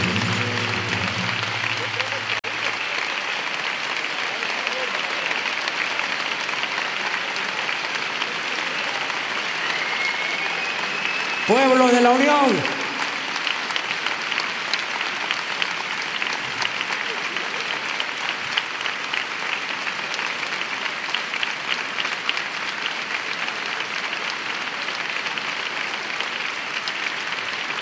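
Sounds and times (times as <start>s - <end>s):
audience clapping: 0.0s - 27.8s
speech: 11.5s - 12.8s.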